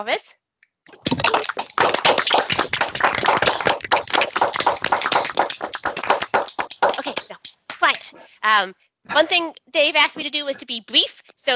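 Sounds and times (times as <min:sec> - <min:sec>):
speech: 0:00.0 - 0:02.0, 0:08.4 - 0:11.5
people clapping over a video call: 0:01.0 - 0:08.2.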